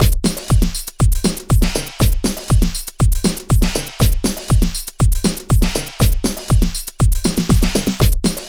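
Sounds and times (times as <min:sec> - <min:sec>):
techno music: 0:00.0 - 0:08.4.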